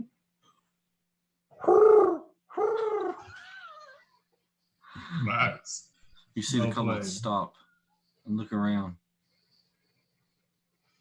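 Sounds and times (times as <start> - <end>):
person imitating an animal call with throaty hoots: 1.5 - 3.4
speech: 5.3 - 7.6, 8.2 - 9.0.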